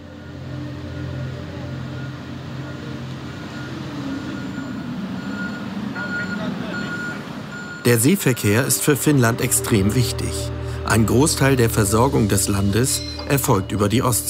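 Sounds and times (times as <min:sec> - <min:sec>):
heavy truck engines rumbling during cargo ferry loading: 0:00.0 - 0:14.2
truck reversing beeps: 0:03.3 - 0:08.6
speech: 0:07.8 - 0:14.2.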